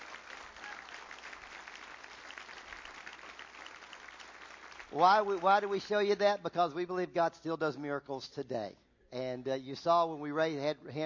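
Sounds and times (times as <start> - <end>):
audience applause: 0.0 - 5.8
speech: 4.9 - 11.0.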